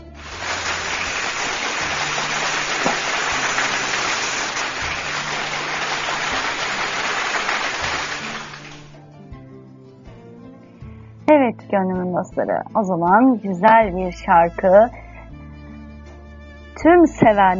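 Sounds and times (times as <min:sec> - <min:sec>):
applause: 0:00.0 - 0:09.0
speech: 0:11.7 - 0:15.0, 0:16.8 - 0:17.5.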